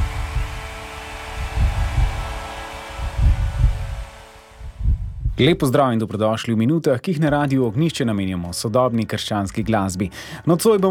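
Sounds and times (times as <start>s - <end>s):
heartbeat: 0.0s - 2.3s, 3.0s - 4.0s, 4.6s - 5.5s
speech: 5.4s - 10.8s.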